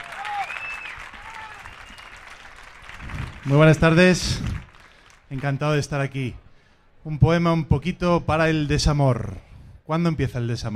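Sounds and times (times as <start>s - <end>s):
audience applause: 0.0s - 5.9s
whistles: 0.1s - 2.4s
speech: 3.4s - 4.5s, 5.3s - 6.4s, 7.0s - 10.7s.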